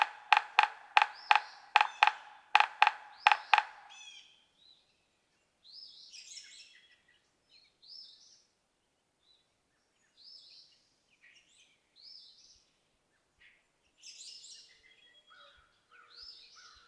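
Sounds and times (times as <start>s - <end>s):
yellow-bellied sapsucker nasal mewing notes: 0.0s - 4.0s.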